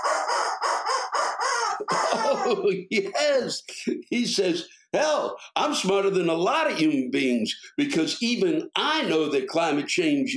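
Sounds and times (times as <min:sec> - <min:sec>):
rubber chicken toy squawking: 0:00.0 - 0:02.7
laughter: 0:01.8 - 0:04.1
speech: 0:01.8 - 0:10.3.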